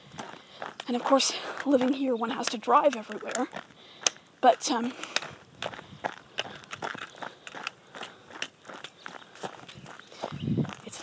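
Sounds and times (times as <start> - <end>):
footsteps of a person walking along a smooth easy road: 0.0 - 11.0
speech: 0.9 - 5.2.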